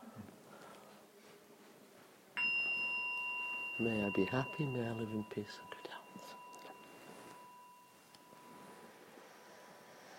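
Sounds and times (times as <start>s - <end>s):
small bell struck during a meditation session: 2.4s - 8.9s
speech: 3.8s - 5.7s.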